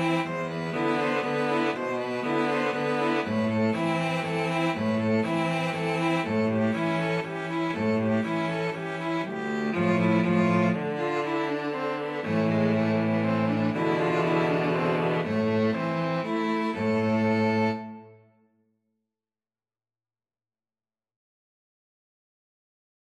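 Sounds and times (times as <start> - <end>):
violin and cello duet: 0.0 - 18.2.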